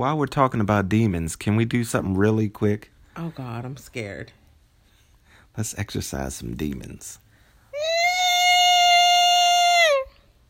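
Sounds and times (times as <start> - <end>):
speech: 0.0 - 4.4, 5.6 - 7.2
high-pitched scream: 7.8 - 10.3.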